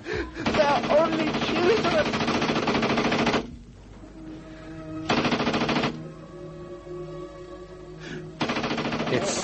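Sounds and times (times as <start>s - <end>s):
tank machine gun fire: 0.4s - 3.5s, 5.1s - 6.0s, 8.4s - 9.4s.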